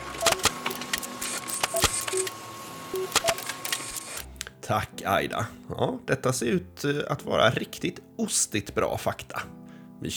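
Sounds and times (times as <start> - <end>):
electronic printer printing fact sheets: 0.0 - 4.3
speech: 4.7 - 10.1.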